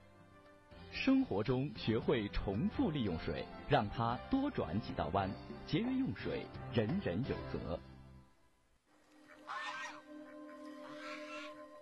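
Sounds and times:
speech: 0:01.0 - 0:07.9
goose honking: 0:09.2 - 0:11.7.

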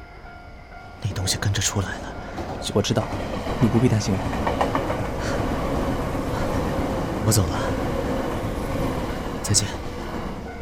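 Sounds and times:
subway train running: 0:00.0 - 0:10.6
speech: 0:01.0 - 0:05.6, 0:07.3 - 0:07.8, 0:09.5 - 0:09.8.

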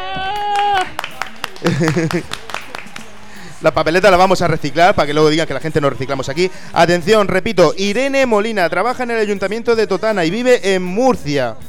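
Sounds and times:
scattered audience clapping on a Spanish comedy programme: 0:00.0 - 0:07.2
laughter: 0:00.0 - 0:10.9
speech: 0:00.2 - 0:01.0, 0:01.6 - 0:02.4, 0:03.6 - 0:11.6.

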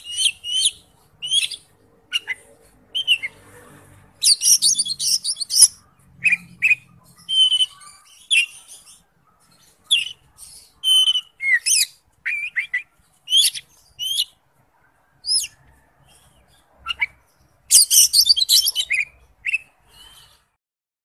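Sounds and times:
bird song of rapid high chirps and trills: 0:00.0 - 0:14.4, 0:15.2 - 0:20.5.

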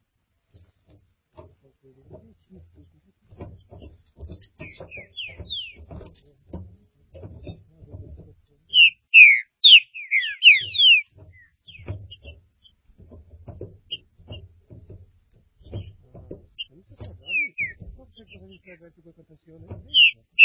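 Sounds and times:
green-winged saltator whistling: 0:04.6 - 0:05.8, 0:08.7 - 0:11.8, 0:17.2 - 0:17.8, 0:19.9 - 0:20.4.

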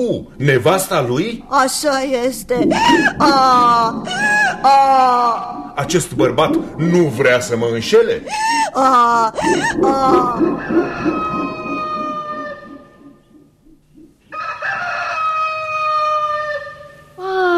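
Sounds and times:
speech: 0:00.0 - 0:11.3
rooster crowing: 0:09.4 - 0:13.4, 0:14.2 - 0:17.1.

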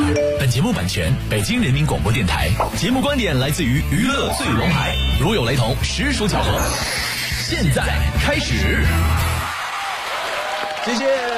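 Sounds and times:
speech: 0:00.5 - 0:09.2, 0:10.8 - 0:11.3
audience applause: 0:09.2 - 0:11.3.

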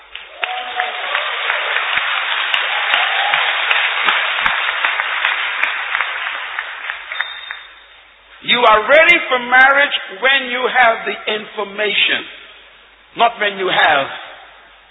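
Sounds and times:
audience clapping: 0:00.0 - 0:08.0
speech: 0:08.6 - 0:12.4, 0:13.2 - 0:14.2.

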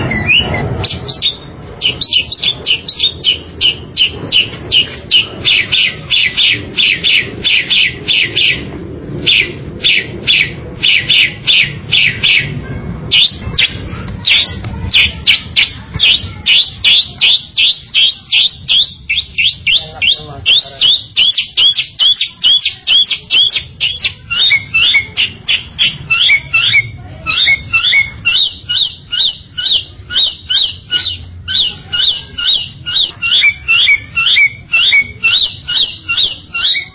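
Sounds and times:
bird chirping calls: 0:00.0 - 0:36.9.

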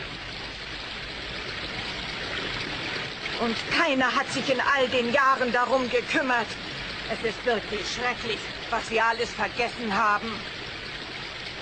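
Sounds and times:
trickling water at a well: 0:00.0 - 0:11.6
speech: 0:03.4 - 0:10.6.

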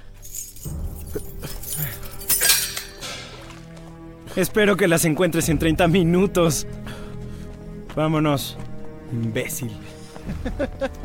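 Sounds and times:
keys jangling: 0:00.0 - 0:03.3
speech: 0:04.4 - 0:06.9, 0:08.0 - 0:11.0
laughter: 0:10.2 - 0:11.0.

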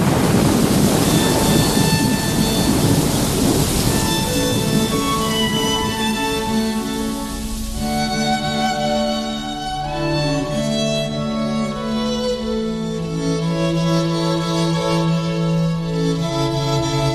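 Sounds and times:
deep thunder rumbling: 0:00.0 - 0:10.4
heavy rain pouring: 0:00.0 - 0:17.1.

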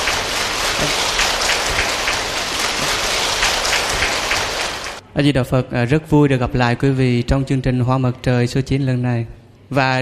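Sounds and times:
loud audience applause: 0:00.0 - 0:05.0
speech: 0:05.2 - 0:10.0.

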